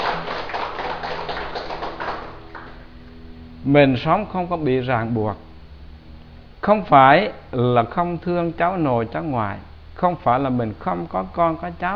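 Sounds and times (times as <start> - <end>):
audience clapping during a talk: 0.0 - 2.9
speech: 3.6 - 5.4, 6.6 - 11.9.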